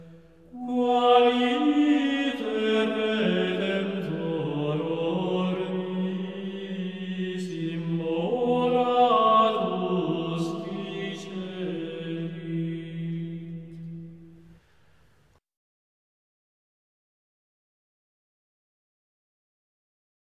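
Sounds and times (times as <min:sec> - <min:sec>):
Gregorian chant: 0:00.0 - 0:14.5.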